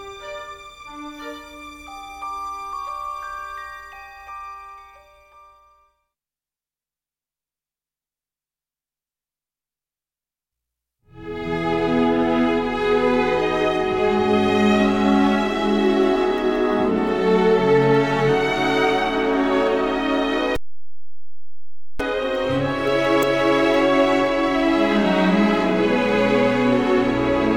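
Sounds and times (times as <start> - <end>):
film music: 0.0 - 4.1, 11.2 - 20.6, 22.0 - 27.5.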